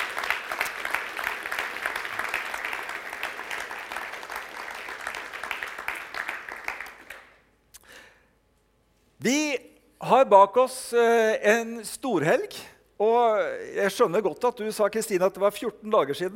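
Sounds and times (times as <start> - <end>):
audience applause: 0.0 - 7.4
speech: 9.2 - 16.3.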